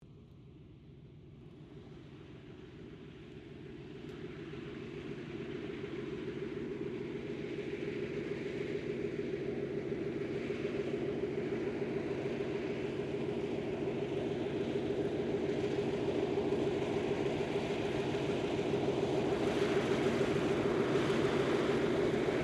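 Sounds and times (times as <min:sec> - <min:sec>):
Lockheed Hudson twin engine light bomber taxiing: 0:00.0 - 0:22.4.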